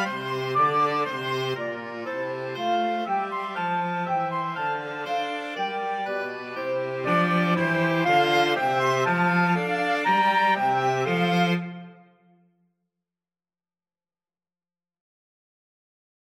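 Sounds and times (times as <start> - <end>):
flexible mixed ensemble of 4 players: 0.0 - 12.1.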